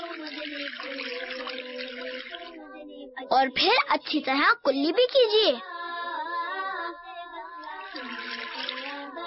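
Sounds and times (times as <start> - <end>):
water running from a tap while washing hands: 0.0 - 2.6, 7.7 - 9.1
speech: 3.2 - 5.7.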